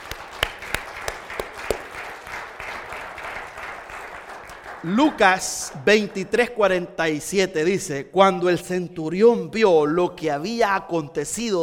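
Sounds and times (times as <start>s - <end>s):
crowd applauding: 0.0s - 5.4s
speech: 4.8s - 11.6s.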